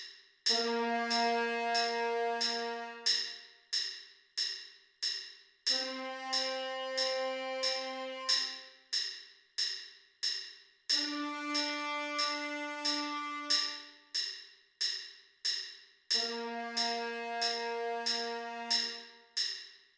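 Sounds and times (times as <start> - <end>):
trumpet: 0.5 - 3.5, 5.7 - 8.7, 10.9 - 14.1, 16.2 - 19.4.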